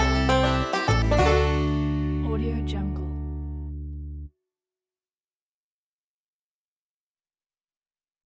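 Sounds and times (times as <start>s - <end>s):
funky bluegrass logo jingle: 0.0s - 3.9s.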